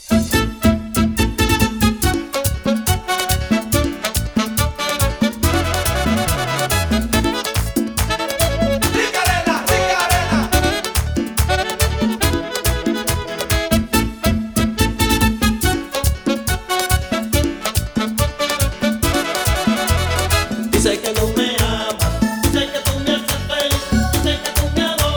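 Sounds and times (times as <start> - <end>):
remix at 140 bpm: 0.1 - 25.1.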